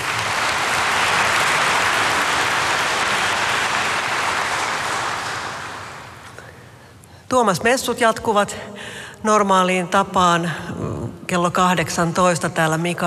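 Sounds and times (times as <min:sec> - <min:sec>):
audience applause: 0:00.0 - 0:06.3
speech: 0:07.4 - 0:13.0.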